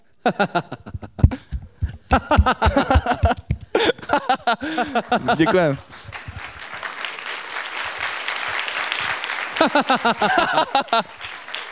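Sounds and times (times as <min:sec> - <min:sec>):
speech: 0:00.2 - 0:00.8, 0:02.1 - 0:02.9, 0:04.7 - 0:05.9, 0:09.6 - 0:11.2
laughter: 0:00.2 - 0:06.6, 0:09.5 - 0:11.6
applause: 0:04.6 - 0:11.6.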